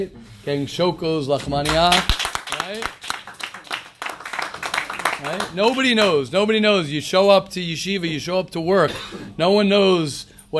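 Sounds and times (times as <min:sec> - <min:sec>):
speech: 0:00.0 - 0:03.0, 0:05.2 - 0:10.5
clapping: 0:01.6 - 0:05.9.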